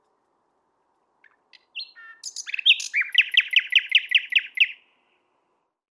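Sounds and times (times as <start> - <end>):
common nightingale singing: 1.2 - 5.2.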